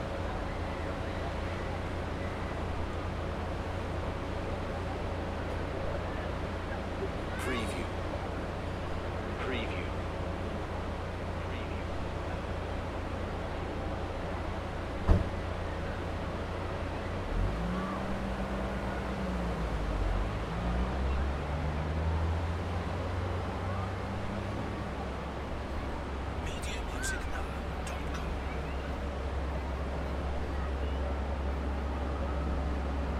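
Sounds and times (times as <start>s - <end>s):
seaside ambience in Spain in the early evening: 0.0s - 33.1s.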